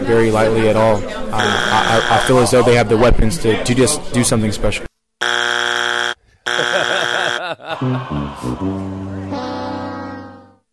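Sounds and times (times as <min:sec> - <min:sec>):
speech: 0:00.1 - 0:04.9, 0:07.8 - 0:09.4
game show buzzer: 0:01.4 - 0:02.5, 0:05.2 - 0:07.4
laughter: 0:01.4 - 0:02.6, 0:06.5 - 0:09.0.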